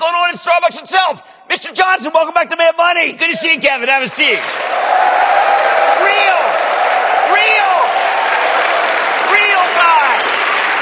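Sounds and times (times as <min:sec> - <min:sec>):
speech: 0:00.4 - 0:05.3
studio audience cheering: 0:04.4 - 0:10.8.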